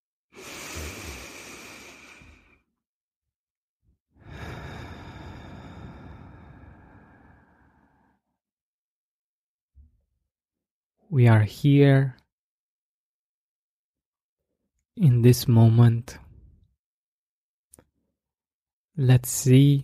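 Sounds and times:
slow deep breath during a guided gratitude exercise: 0:00.3 - 0:02.7, 0:04.2 - 0:08.4
speech: 0:11.1 - 0:12.2, 0:15.0 - 0:16.2, 0:19.0 - 0:19.8.

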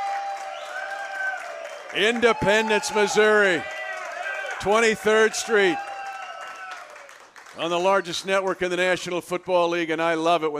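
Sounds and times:
live audience crowd cheering: 0:00.0 - 0:08.4
speech: 0:01.9 - 0:03.8, 0:04.6 - 0:05.9, 0:07.6 - 0:10.5.

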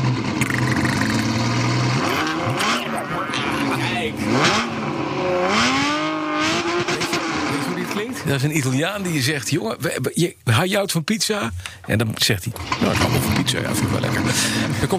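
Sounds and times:
Ferrari Testarossa engine revving: 0:00.0 - 0:09.4, 0:12.5 - 0:14.9
speech: 0:08.4 - 0:14.9.

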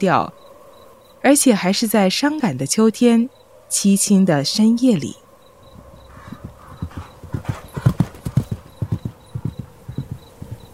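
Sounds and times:
speech: 0:00.0 - 0:00.4, 0:01.2 - 0:05.2
horse hooves clip-clopping on a quiet autumn night: 0:05.7 - 0:10.7.

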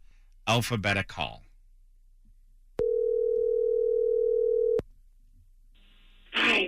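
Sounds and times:
speech: 0:00.5 - 0:01.5
telephone call ringing: 0:02.8 - 0:04.8.

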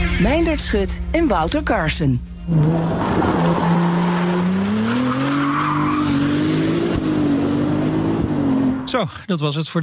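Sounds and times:
speech: 0:00.2 - 0:03.8, 0:08.9 - 0:09.8
Ferrari 296 GTS plug-in hybrid supercar engine: 0:02.2 - 0:09.0.

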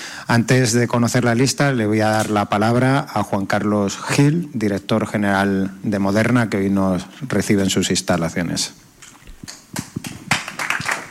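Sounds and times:
speech: 0:00.3 - 0:08.9
audience applause: 0:10.0 - 0:11.0.

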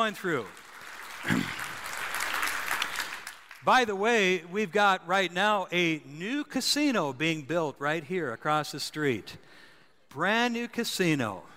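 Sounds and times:
speech: 0:00.0 - 0:00.6, 0:01.2 - 0:01.6, 0:03.6 - 0:11.5
crowd applause: 0:00.0 - 0:03.6.

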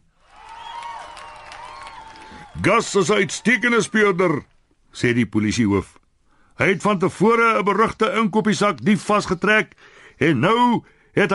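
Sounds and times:
crowd cheering and clapping: 0:00.2 - 0:04.5
excited voices: 0:00.4 - 0:04.5
speech: 0:02.6 - 0:06.0, 0:06.6 - 0:11.3.

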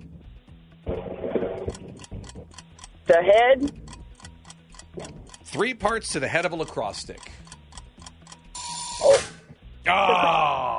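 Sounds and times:
timer going off with harsh buzzing: 0:01.6 - 0:09.2
speech: 0:03.1 - 0:03.8, 0:05.0 - 0:07.4, 0:09.9 - 0:10.7.

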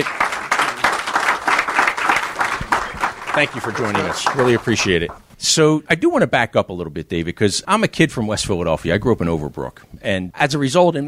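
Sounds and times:
audience applause welcoming a guest on stage at a live business event: 0:00.0 - 0:05.2
speech: 0:03.4 - 0:11.0.

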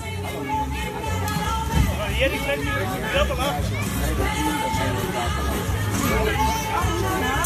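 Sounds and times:
crowd babble at the Dutch national tent-pitching championship at Camping De Haar: 0:00.0 - 0:07.4.

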